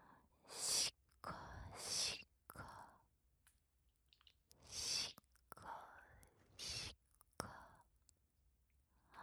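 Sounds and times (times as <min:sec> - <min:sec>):
ear licking on left and right simultaneously: 0:00.5 - 0:02.8, 0:04.1 - 0:08.2.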